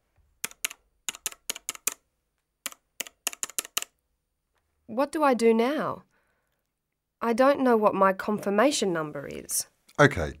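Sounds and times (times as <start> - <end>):
typing on a computer keyboard: 0.4 - 4.0
speech: 4.9 - 6.1, 7.2 - 10.3.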